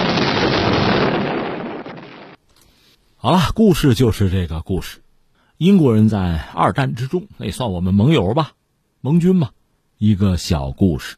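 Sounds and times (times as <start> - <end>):
ship exploding in a World War II account: 0.0 - 2.4
speech: 3.2 - 5.0, 5.6 - 11.1.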